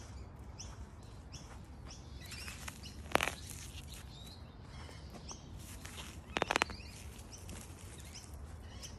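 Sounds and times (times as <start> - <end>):
weeding: 2.3 - 4.1, 5.6 - 8.2.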